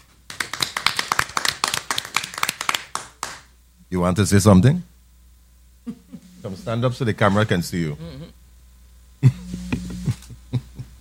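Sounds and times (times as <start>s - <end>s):
round of applause: 0.3s - 3.5s
speech: 3.9s - 4.9s, 6.4s - 8.4s.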